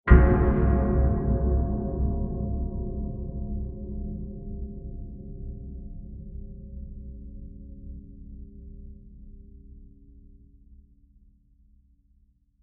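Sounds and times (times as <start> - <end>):
long diffuse metal impact: 0.1 - 3.8.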